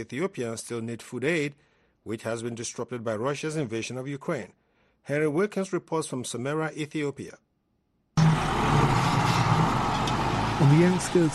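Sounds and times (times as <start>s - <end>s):
speech: 0.0s - 7.4s, 10.6s - 11.3s
tractors working a field: 8.2s - 11.3s.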